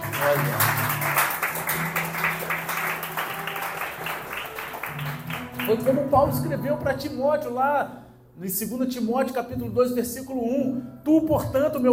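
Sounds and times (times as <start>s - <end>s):
audience applause: 0.0s - 6.1s
speech: 5.7s - 11.9s.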